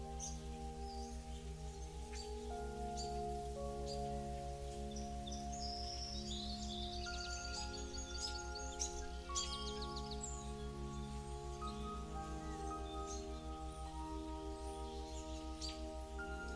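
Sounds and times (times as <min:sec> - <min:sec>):
birds: 0:00.0 - 0:16.5
relaxing flow music with theta waves: 0:00.0 - 0:16.5.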